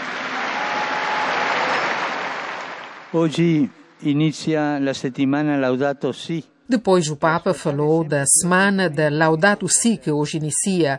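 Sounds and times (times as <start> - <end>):
large crowd applause: 0.0 - 4.2
speech: 3.1 - 10.9.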